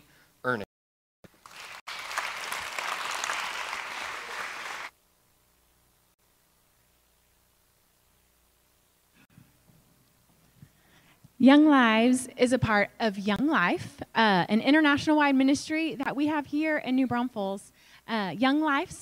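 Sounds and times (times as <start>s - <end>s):
speech: 0.4s - 0.6s, 11.4s - 19.0s
audience applause: 1.3s - 4.9s.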